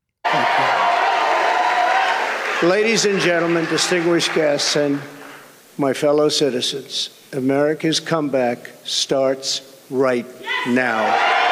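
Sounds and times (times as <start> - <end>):
crowd cheering and applauding at rally: 0.2 - 5.4, 11.0 - 11.5
speech: 2.6 - 5.2, 5.8 - 11.3.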